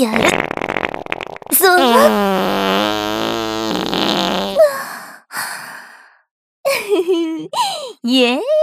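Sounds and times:
speech: 0.0 - 0.6, 8.1 - 8.5
fart trick performed by an older sister: 0.0 - 4.6.

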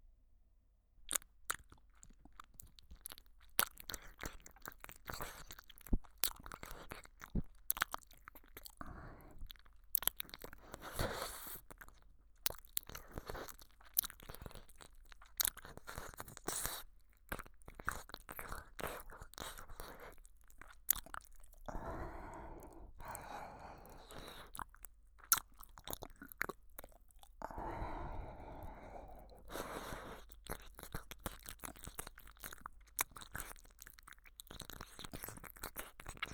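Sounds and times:
ASMR mouth sounds of someone nibbling and licking the listener's ear: 1.1 - 36.3.

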